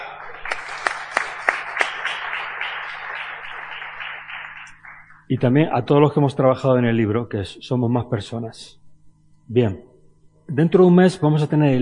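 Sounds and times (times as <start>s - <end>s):
audience applause: 0.0s - 5.1s
speech: 5.3s - 8.8s, 9.5s - 9.9s, 10.5s - 11.8s.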